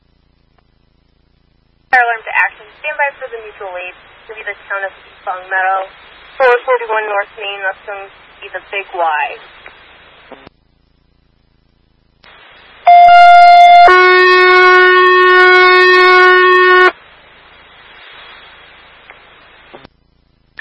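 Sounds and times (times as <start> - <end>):
faint radio static: 1.9 - 10.6, 12.2 - 20.0
speech: 2.0 - 9.7
two-tone fire dispatch alert tones: 12.9 - 16.9.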